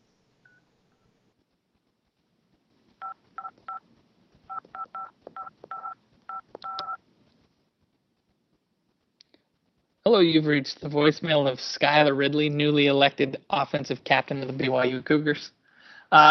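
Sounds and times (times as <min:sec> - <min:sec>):
telephone keypad dialing tones: 0:04.5 - 0:07.0
speech: 0:10.1 - 0:16.2.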